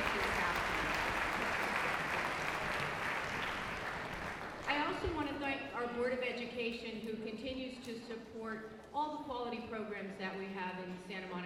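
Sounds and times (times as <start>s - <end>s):
audience applause: 0.0s - 4.7s
speech: 6.0s - 11.4s.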